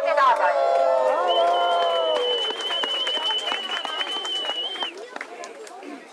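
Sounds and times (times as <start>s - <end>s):
crowd cheering at a demonstration: 0.0s - 5.3s
crowd applause at a demonstration: 0.8s - 5.7s.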